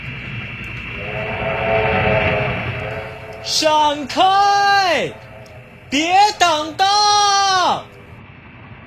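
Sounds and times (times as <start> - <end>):
train rumbling by: 0.0 - 8.2
steady mid-pitched train whistle: 0.9 - 8.0
speech: 3.5 - 5.3, 5.9 - 7.0.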